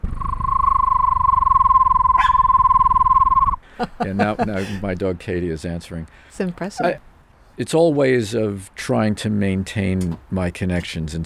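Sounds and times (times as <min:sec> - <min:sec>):
person imitating a screech owl with a trilled whistle: 0:00.0 - 0:03.6
laughter: 0:03.7 - 0:05.0
speech: 0:03.8 - 0:11.2.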